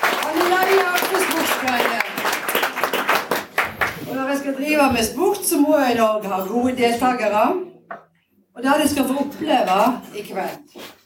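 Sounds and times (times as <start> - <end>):
audience applause: 0.0 - 4.1
speech: 4.7 - 8.0, 8.6 - 10.9.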